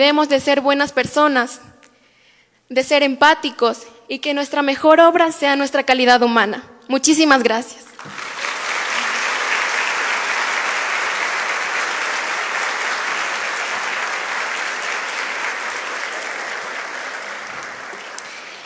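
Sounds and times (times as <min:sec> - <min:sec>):
speech: 0:00.0 - 0:01.7, 0:02.7 - 0:08.2
audience applause: 0:08.0 - 0:18.6.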